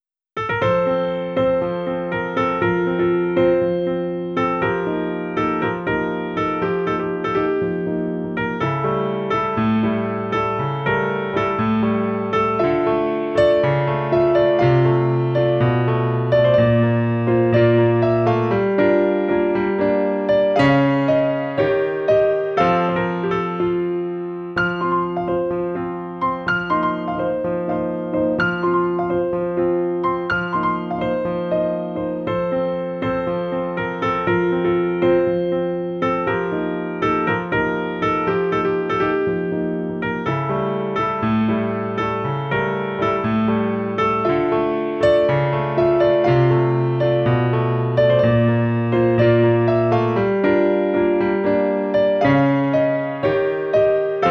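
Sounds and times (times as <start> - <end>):
piano music: 0.4 - 54.3.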